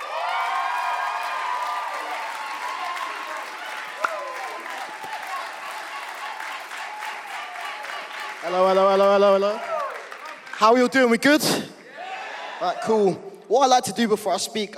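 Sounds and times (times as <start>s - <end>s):
cheers and whoops: 0.0s - 8.4s, 9.4s - 10.2s, 11.8s - 12.8s
audience applause: 0.0s - 11.4s
speech: 8.5s - 9.7s, 10.6s - 11.7s, 12.6s - 14.7s.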